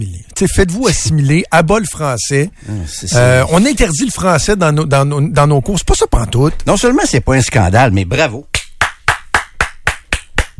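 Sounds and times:
speech: 0:00.0 - 0:08.6
hand clapping: 0:08.5 - 0:10.5.

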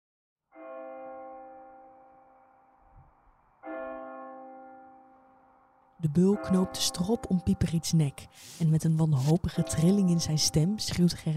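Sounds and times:
clock bell striking twelve: 0:00.6 - 0:02.7, 0:03.6 - 0:08.2, 0:09.2 - 0:11.3
speech: 0:06.0 - 0:11.3.

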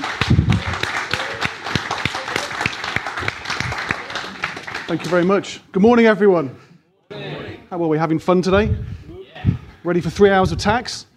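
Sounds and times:
audience applause: 0:00.0 - 0:05.5
speech: 0:04.9 - 0:06.7, 0:07.7 - 0:09.0, 0:09.8 - 0:11.1.

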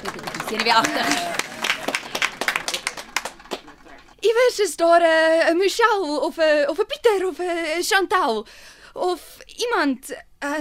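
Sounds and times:
audience applause with hand clapping: 0:00.0 - 0:04.2
speech: 0:00.5 - 0:01.4, 0:04.4 - 0:10.5.

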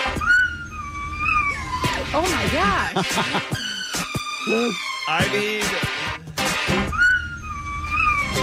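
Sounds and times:
dog howling and yipping along to pop song: 0:00.1 - 0:02.2, 0:06.9 - 0:08.4
speech: 0:02.1 - 0:03.6, 0:04.5 - 0:06.0
laughter: 0:02.8 - 0:04.1.

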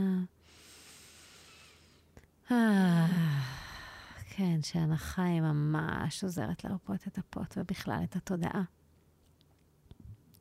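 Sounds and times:
deep breath in during a guided relaxation breathing exercise: 0:00.4 - 0:02.1
speech: 0:02.5 - 0:03.2, 0:04.4 - 0:08.8.

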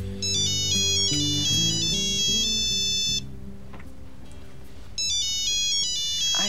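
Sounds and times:
low tones: 0:00.0 - 0:06.4
mobile phone ringtone playing a bright melodic electronic tune: 0:00.2 - 0:03.2, 0:05.0 - 0:06.4.

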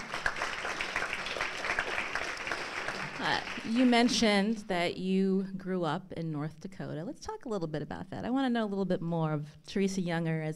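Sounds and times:
crowd applauding: 0:00.0 - 0:04.3
speech: 0:03.2 - 0:10.5.

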